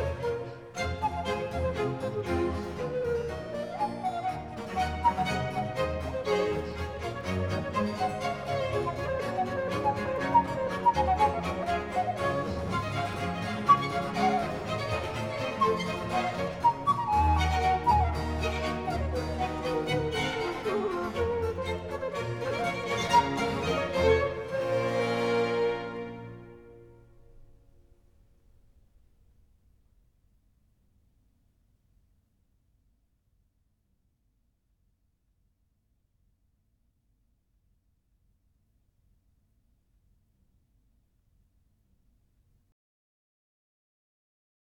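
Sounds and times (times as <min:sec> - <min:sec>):
baroque orchestral suite movement: 0:00.0 - 0:27.6.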